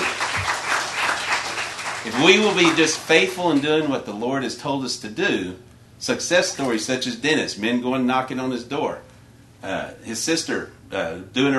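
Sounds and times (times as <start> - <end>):
audience applause: 0.0 - 3.9
speech: 2.0 - 11.5.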